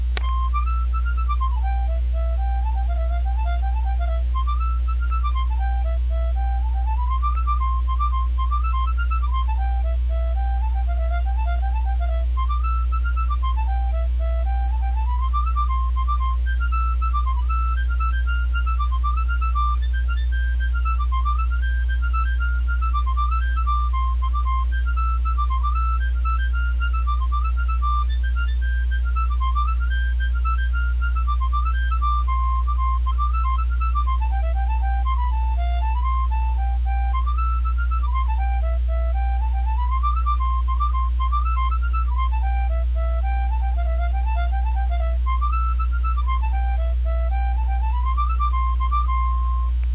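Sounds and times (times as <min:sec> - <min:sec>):
harmonica reel: 0:00.1 - 0:49.9.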